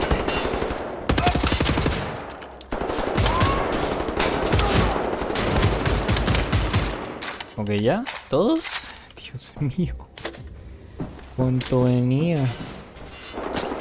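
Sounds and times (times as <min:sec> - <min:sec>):
gunfire in first-person shooter Wolfenstein The New Order: 0:00.0 - 0:07.2
speech: 0:07.6 - 0:08.7, 0:09.3 - 0:10.1, 0:11.4 - 0:12.7.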